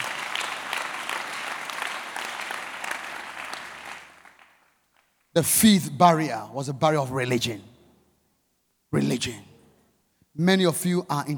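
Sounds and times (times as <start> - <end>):
audience clapping: 0.0 - 5.3
speech: 5.4 - 7.7, 8.9 - 9.5, 10.4 - 11.3.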